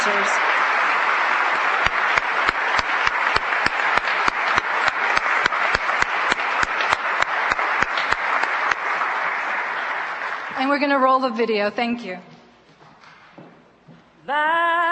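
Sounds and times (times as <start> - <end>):
speech: 0.0 - 0.5, 10.7 - 12.3, 14.3 - 14.8
audience applause: 0.0 - 11.2.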